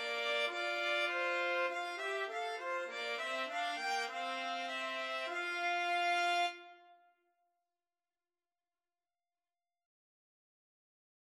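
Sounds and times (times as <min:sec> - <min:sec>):
trumpet in a trumpet and violin duet: 0:00.0 - 0:07.0
violin in a trumpet and violin duet: 0:00.0 - 0:07.0.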